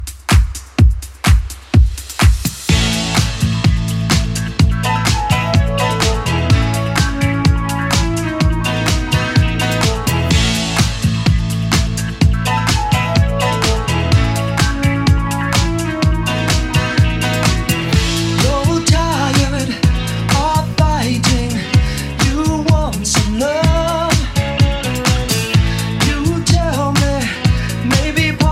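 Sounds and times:
clean 80s club music at 126 BPM: 0.0 - 28.5.

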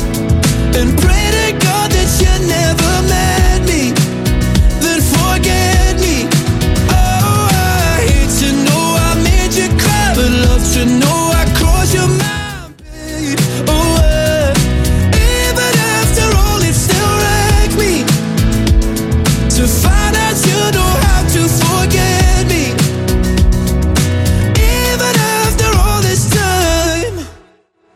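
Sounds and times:
Top 40 pop dance music: 0.0 - 27.4.

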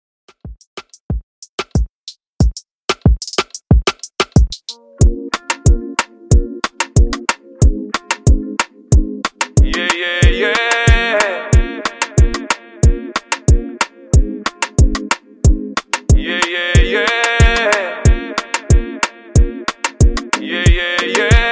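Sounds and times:
Afrobeat moombahton beat: 0.3 - 21.4.

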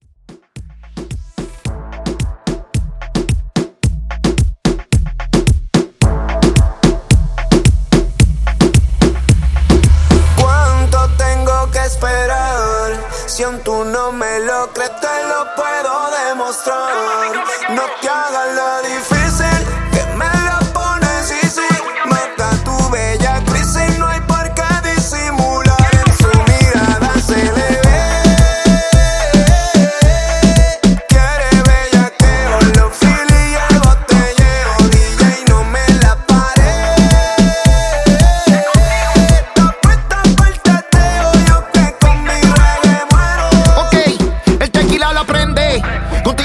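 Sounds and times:
Latin music intro: 0.2 - 46.4.

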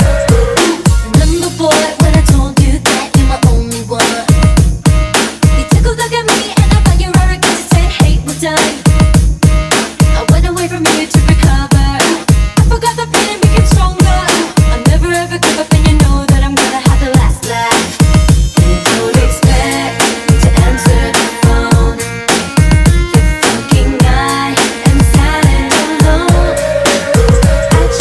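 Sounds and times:
drum machine beat at 105 BPM: 0.0 - 28.0.

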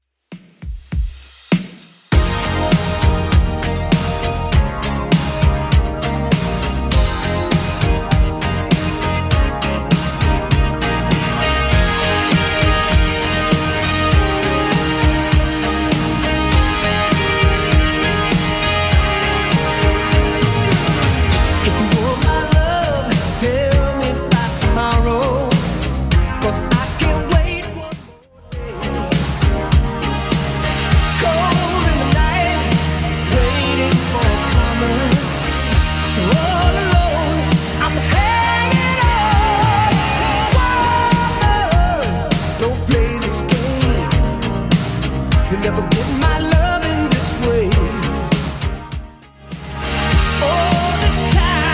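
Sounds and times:
80s club edit music at 100 BPM: 0.3 - 51.7.

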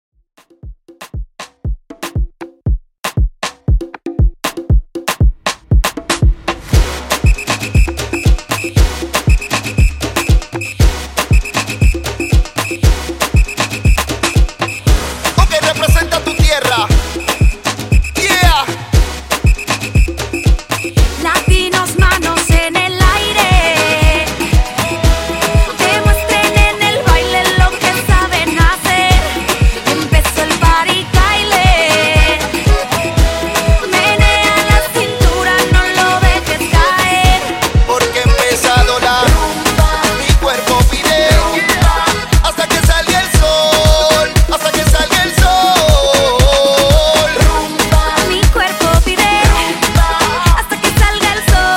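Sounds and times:
rumba Latin Afro reggaeton beat at 118 BPM: 0.4 - 51.7.

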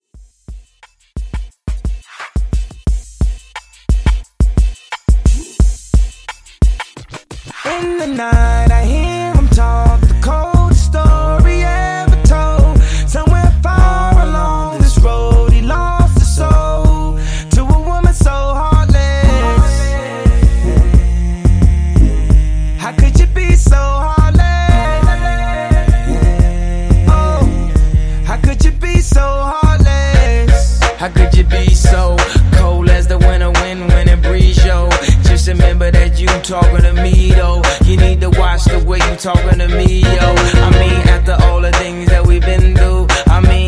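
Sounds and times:
R&B music: 0.0 - 43.6.

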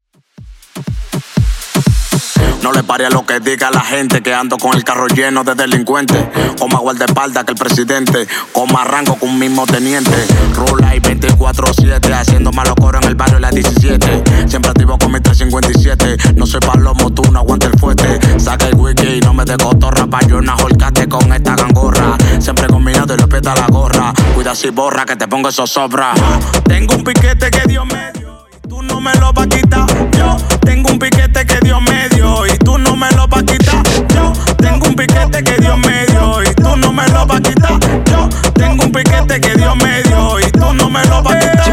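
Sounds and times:
Latin reggaeton music: 0.0 - 41.7.

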